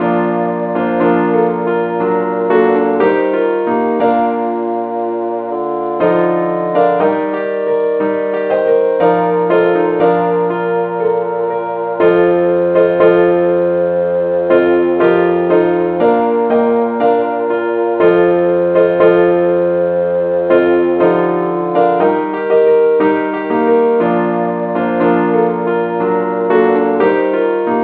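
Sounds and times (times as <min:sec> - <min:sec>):
keyboard: 0:00.0 - 0:27.8.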